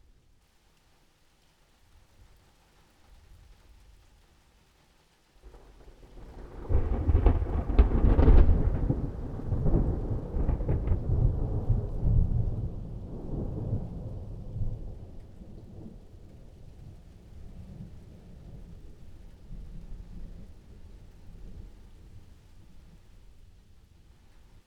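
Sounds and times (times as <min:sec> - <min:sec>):
thunder: 0:05.5 - 0:22.2.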